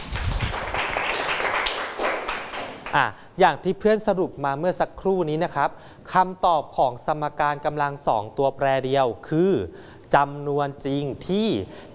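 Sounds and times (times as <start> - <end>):
students clapping in a classroom: 0.0 - 3.0
speech: 2.9 - 11.9.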